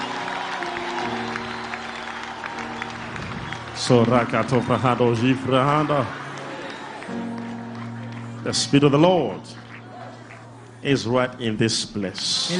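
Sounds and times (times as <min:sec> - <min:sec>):
audience applause: 0:00.0 - 0:12.5
speech: 0:03.8 - 0:06.2, 0:08.4 - 0:09.6, 0:10.8 - 0:12.5.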